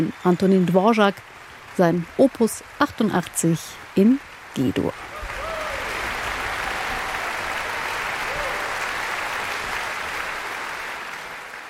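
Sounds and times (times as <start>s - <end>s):
speech: 0.0s - 5.1s
large concert hall audience applause: 5.0s - 11.6s
faint whistles and cheers: 5.1s - 11.4s.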